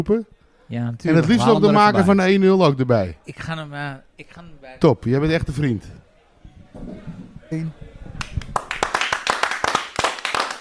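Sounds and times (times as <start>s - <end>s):
speech: 0.0s - 6.0s, 6.8s - 7.9s
loud applause: 8.2s - 10.5s.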